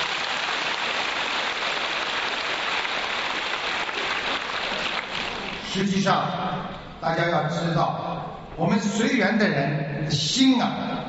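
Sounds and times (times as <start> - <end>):
crowd applause: 0.0 - 5.7
speech: 5.7 - 11.0.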